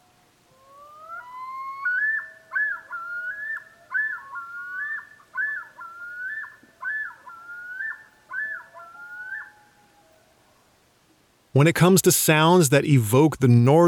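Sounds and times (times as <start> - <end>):
chorus of common loons yodeling: 0.6 - 10.1
speech: 11.6 - 13.8.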